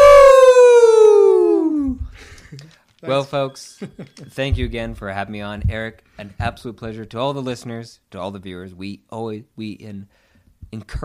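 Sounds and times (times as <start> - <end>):
people imitating a wolf howl: 0.0 - 2.0
speech: 3.0 - 11.0.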